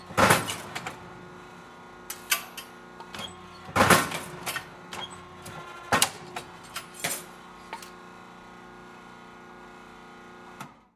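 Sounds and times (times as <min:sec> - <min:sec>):
metal shear cutting thick metal pieces: 0:02.1 - 0:08.0.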